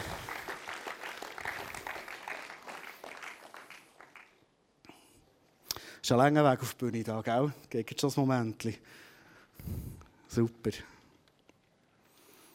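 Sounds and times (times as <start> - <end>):
audience applause: 0.0 - 4.4
speech: 6.1 - 9.0, 10.4 - 10.9.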